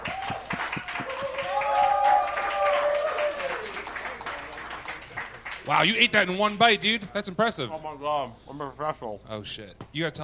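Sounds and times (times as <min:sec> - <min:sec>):
crowd applause: 0:00.0 - 0:05.9
speech: 0:05.7 - 0:10.2.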